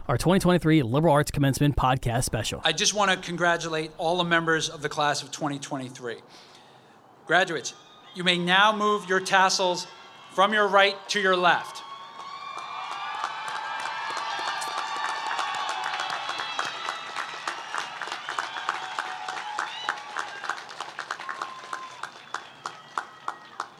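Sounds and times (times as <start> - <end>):
speech: 0.1 - 6.5, 7.3 - 11.8
cheers and whoops: 7.7 - 23.7
large audience applause: 9.3 - 23.7.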